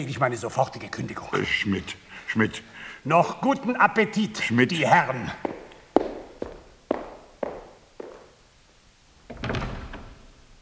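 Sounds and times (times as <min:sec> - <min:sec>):
speech: 0:00.0 - 0:05.6
door closing quietly: 0:09.2 - 0:10.6.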